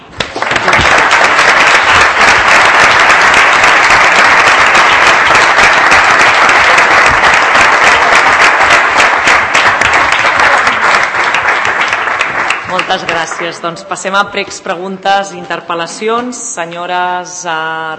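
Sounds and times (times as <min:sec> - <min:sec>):
applause: 0:00.0 - 0:14.0
speech: 0:12.9 - 0:17.9.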